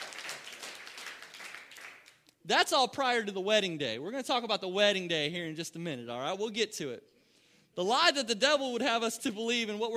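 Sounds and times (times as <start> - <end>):
crowd applauding: 0.0 - 2.2
speech: 2.4 - 7.1, 7.8 - 9.9.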